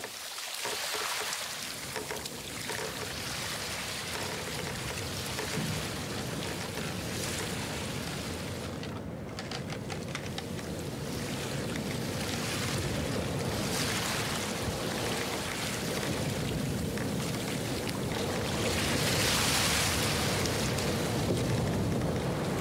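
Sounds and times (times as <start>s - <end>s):
ocean tides: 0.0s - 22.5s.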